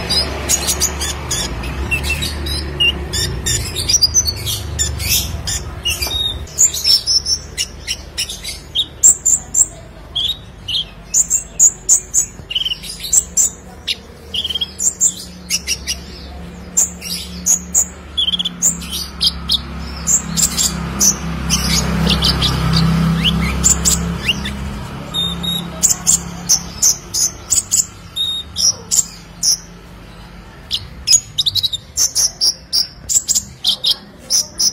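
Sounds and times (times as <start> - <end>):
Sunbird song of high chirps: 0.0 - 34.7.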